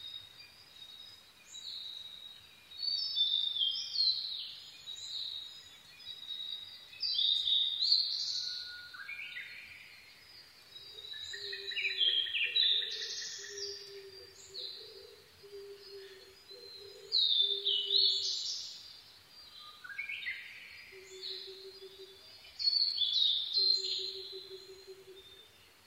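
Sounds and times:
blue-and-white flycatcher whistled song: 6.9 - 10.0, 11.0 - 18.8, 19.5 - 25.6.

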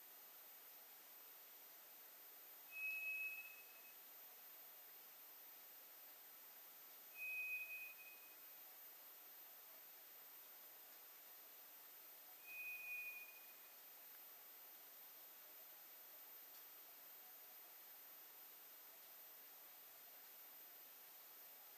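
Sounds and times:
steady hiss: 0.0 - 21.7
White's thrush whistle: 2.7 - 4.0, 7.2 - 8.4, 12.4 - 13.7.

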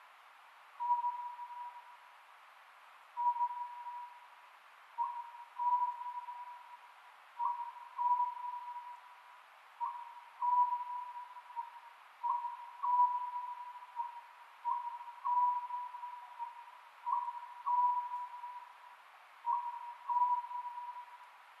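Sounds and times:
faint steady tone: 0.0 - 21.5
oriental scops owl hooting: 0.8 - 1.9, 3.2 - 4.2, 5.0 - 6.8, 7.4 - 9.1, 9.8 - 21.3.

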